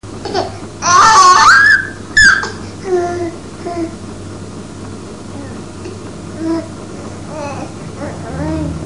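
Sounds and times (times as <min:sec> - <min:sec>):
baby squeaking: 0:00.9 - 0:02.6.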